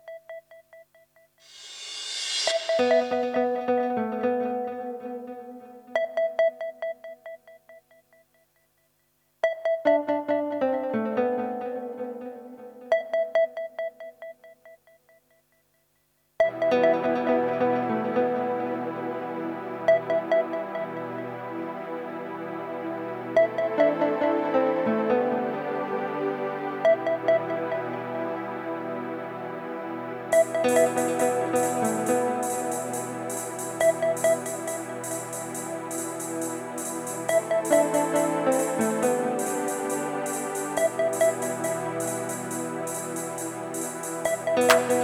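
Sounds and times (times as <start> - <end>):
Indian trance music mix: 1.5 - 6.9, 9.8 - 13.4, 16.4 - 45.0.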